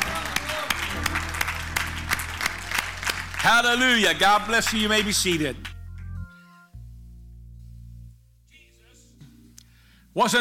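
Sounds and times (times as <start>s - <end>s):
audience clapping in unison: 0.0s - 6.1s
speech: 3.4s - 5.7s, 10.2s - 10.3s.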